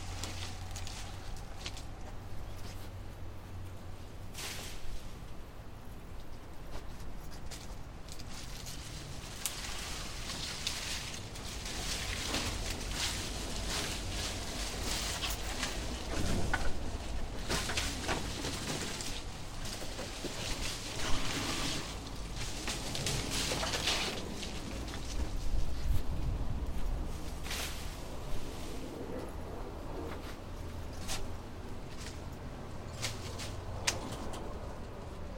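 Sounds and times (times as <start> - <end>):
branches of apple trees rustling and snapping being cut down: 0.0 - 3.2, 4.2 - 5.4, 6.2 - 29.4, 30.0 - 35.2
sharper cracks: 7.4 - 25.7.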